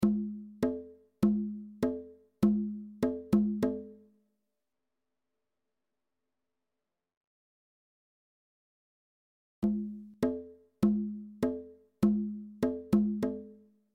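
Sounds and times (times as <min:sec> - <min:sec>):
bongos: 0:00.0 - 0:04.0, 0:09.6 - 0:13.6.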